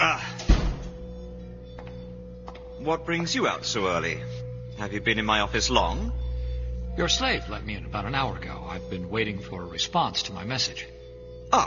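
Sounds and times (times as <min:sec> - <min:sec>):
door closing: 0:00.4 - 0:01.1
speech: 0:02.8 - 0:06.2, 0:07.0 - 0:10.9.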